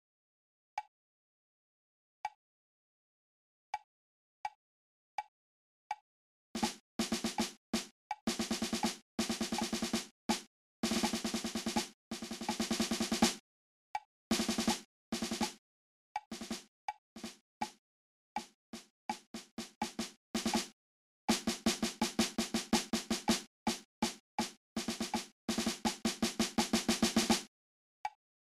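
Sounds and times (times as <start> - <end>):
percussion: 6.6 - 13.4, 14.3 - 15.6, 16.3 - 17.8, 18.4 - 27.5.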